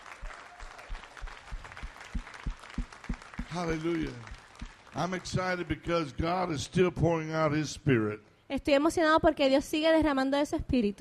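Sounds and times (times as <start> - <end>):
audience applause: 0.0 - 5.8
speech: 3.5 - 4.3, 5.0 - 10.9.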